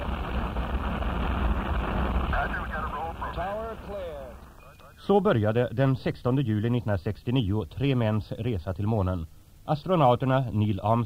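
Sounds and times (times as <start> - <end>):
Apollo 11 rocket engines roaring at liftoff: 0.0 - 4.7
speech: 5.1 - 11.0.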